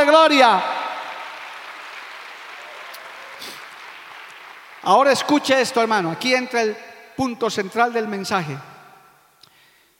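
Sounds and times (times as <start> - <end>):
speech: 0.0 - 0.7, 4.8 - 8.7
audience applause: 0.3 - 5.4.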